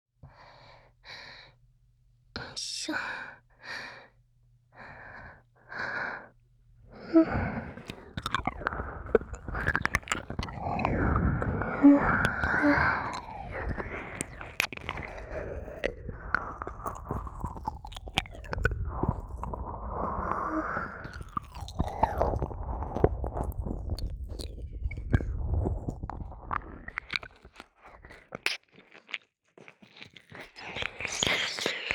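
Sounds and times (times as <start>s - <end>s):
ear licking: 7.5s - 31.9s.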